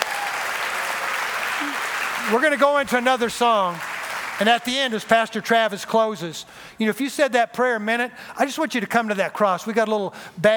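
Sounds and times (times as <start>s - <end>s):
audience applause, hand clapping: 0.0s - 5.1s
speech: 1.6s - 10.5s.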